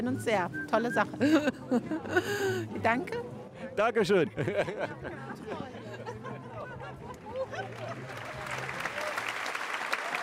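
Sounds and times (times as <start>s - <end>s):
speech: 0.0s - 6.1s
murmur of voices: 0.0s - 9.2s
laughter: 1.0s - 2.9s, 4.2s - 9.2s
crowd applause with dense clapping: 7.1s - 10.2s
excited cheering: 7.3s - 10.2s.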